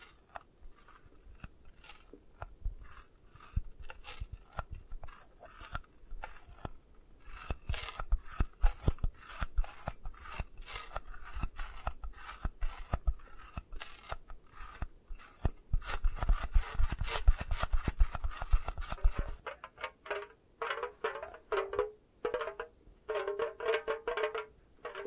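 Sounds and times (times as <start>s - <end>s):
dry rasping scratching: 0.0s - 25.0s.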